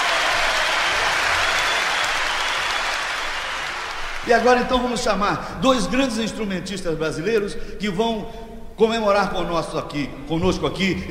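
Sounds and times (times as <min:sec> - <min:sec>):
audience applause: 0:00.0 - 0:04.8
speech: 0:04.3 - 0:11.0.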